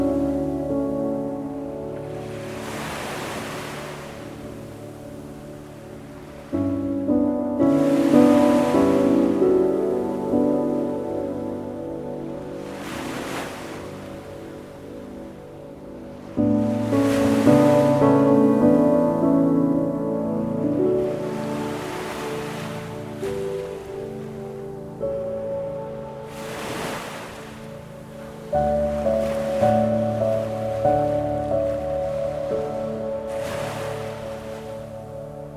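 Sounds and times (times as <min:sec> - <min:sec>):
ocean waves for sleep meditation: 0:00.0 - 0:35.5.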